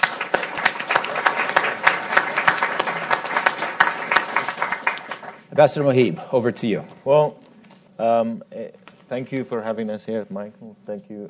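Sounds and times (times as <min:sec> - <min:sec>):
audience applause at a Brookings event welcoming the Afghan ambassador and a minister: 0:00.0 - 0:05.5
speech: 0:05.6 - 0:07.4, 0:08.0 - 0:11.2.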